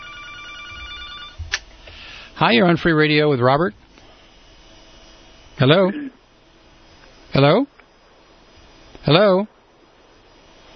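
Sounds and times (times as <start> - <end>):
telephone ringing with an incoming call: 0.0 - 1.4
speech: 2.4 - 3.8, 5.6 - 6.2, 7.3 - 7.7, 9.0 - 9.5.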